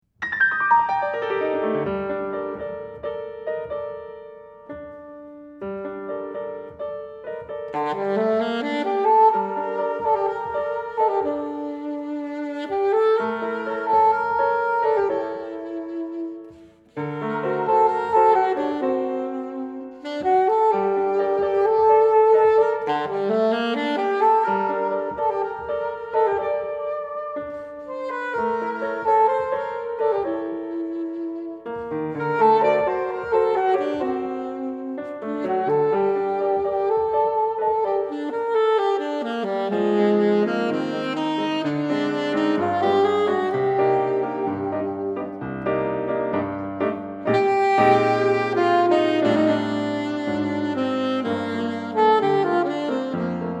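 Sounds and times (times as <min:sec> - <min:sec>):
piano: 0:00.0 - 0:53.5
saxophone: 0:00.9 - 0:53.5.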